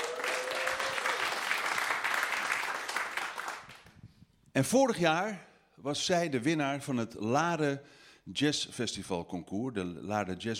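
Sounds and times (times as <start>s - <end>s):
audience applause: 0.0s - 4.0s
speech: 4.6s - 10.5s.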